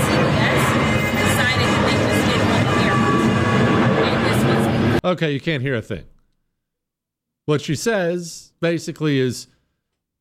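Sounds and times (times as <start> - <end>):
airplane flying overhead: 0.0 - 5.0
speech: 5.0 - 6.2, 7.5 - 9.6.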